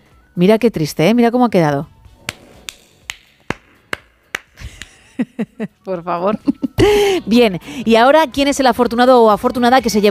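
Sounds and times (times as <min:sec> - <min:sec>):
speech: 0:00.4 - 0:01.9, 0:05.2 - 0:10.0
one person clapping: 0:02.3 - 0:05.1
laughter: 0:04.6 - 0:07.3.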